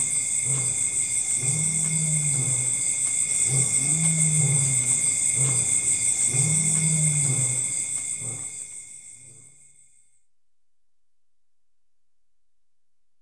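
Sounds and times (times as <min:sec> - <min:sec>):
lion giving deep moaning roars in forest at dusk in Africa: 0:00.0 - 0:09.5.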